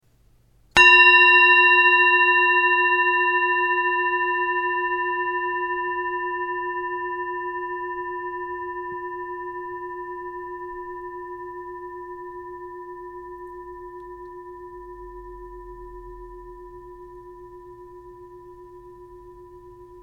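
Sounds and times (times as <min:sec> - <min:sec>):
singing bowl: 0:00.8 - 0:20.0.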